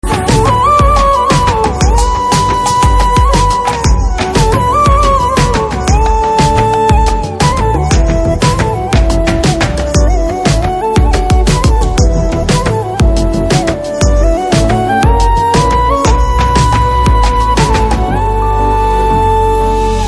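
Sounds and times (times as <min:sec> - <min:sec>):
Telugu background music ringtone: 0:00.0 - 0:20.0.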